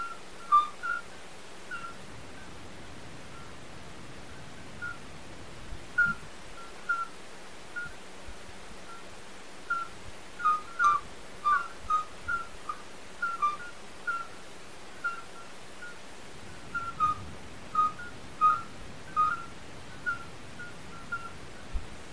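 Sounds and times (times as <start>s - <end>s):
chorus of midwife toads calling: 0.0s - 1.1s, 1.7s - 2.5s, 4.7s - 5.0s, 6.0s - 7.2s, 7.8s - 8.0s, 9.7s - 14.4s, 15.0s - 22.1s.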